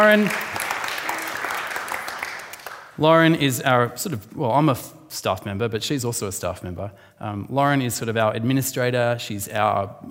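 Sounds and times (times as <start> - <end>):
speech: 0.0 - 0.5, 3.0 - 10.0
audience applause: 0.0 - 3.0.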